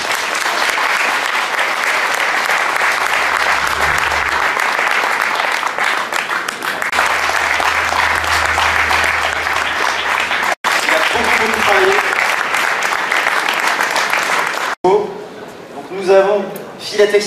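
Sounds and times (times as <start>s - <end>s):
audience applause: 0.0s - 14.8s
speech: 17.1s - 17.2s.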